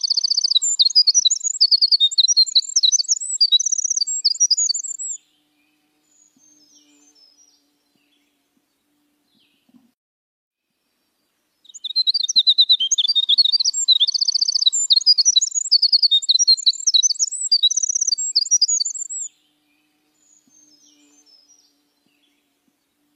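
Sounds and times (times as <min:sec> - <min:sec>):
Eurasian skylark warbled song with repeated trills: 0:00.0 - 0:09.9, 0:11.0 - 0:23.1.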